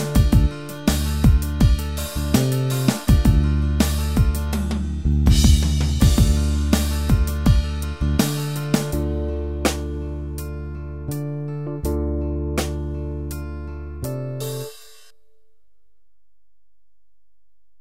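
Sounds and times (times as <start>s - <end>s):
slow keyboard rhythm: 0.0s - 15.1s.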